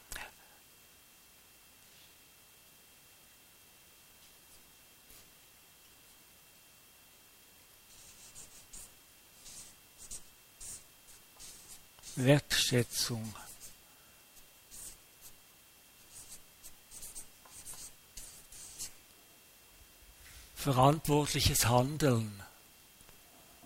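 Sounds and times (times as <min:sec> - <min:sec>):
pen writing on paper: 0:07.9 - 0:12.2, 0:14.7 - 0:15.4, 0:16.1 - 0:18.9
speech: 0:12.2 - 0:13.4, 0:20.6 - 0:22.5.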